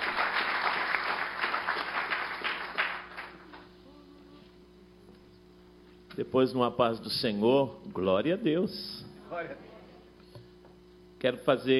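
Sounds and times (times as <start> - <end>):
audience applauding: 0.0 - 3.6
speech: 6.2 - 9.8, 11.2 - 11.7.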